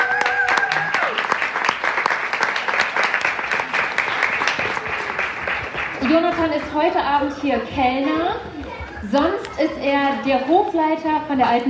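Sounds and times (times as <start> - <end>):
audience applause: 0.0 - 6.6
speech: 6.0 - 11.6.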